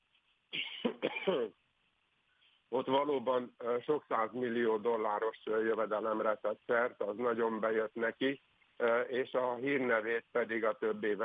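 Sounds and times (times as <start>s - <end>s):
harsh coughing and throat clearing: 0.5s - 1.6s
speech: 0.5s - 1.6s, 2.7s - 11.2s.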